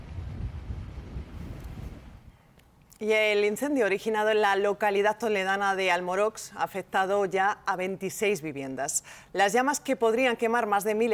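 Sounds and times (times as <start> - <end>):
strong wind blowing at a wildfire near Almorox Toledo: 0.0 - 2.4
speech: 3.0 - 11.1.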